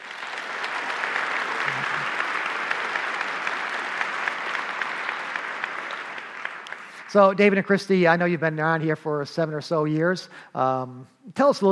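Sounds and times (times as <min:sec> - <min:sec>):
church congregation applauding at the morning service: 0:00.0 - 0:08.5
speech: 0:07.1 - 0:11.7.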